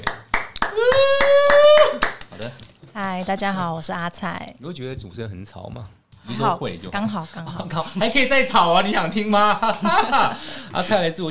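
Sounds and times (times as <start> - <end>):
clapping hands: 0.0 - 2.7
speech: 3.0 - 11.2
laughter: 9.4 - 10.8.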